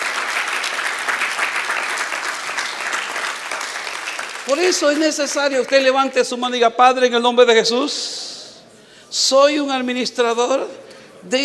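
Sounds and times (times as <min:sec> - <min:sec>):
audience applause: 0:00.0 - 0:05.1
speech: 0:04.5 - 0:08.2, 0:09.1 - 0:11.4.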